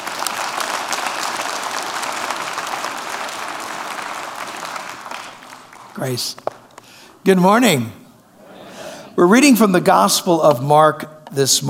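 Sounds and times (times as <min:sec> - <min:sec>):
church congregation applauding to welcome a visiting bishop: 0:00.0 - 0:07.0
speech: 0:06.0 - 0:06.5, 0:07.2 - 0:08.0, 0:09.2 - 0:11.6.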